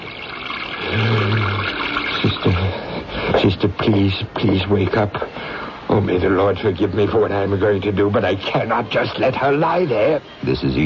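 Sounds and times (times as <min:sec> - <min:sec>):
water running: 0:00.0 - 0:10.8
speech: 0:02.4 - 0:10.8.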